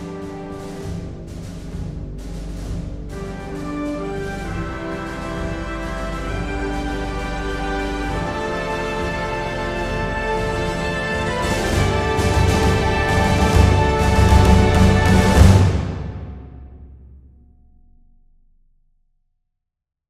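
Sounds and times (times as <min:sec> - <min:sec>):
fanfare: 0:03.2 - 0:16.3.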